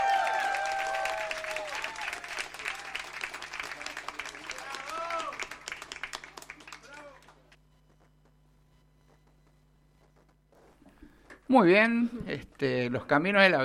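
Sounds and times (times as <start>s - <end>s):
audience applause: 0.0s - 7.5s
speech: 11.5s - 13.6s.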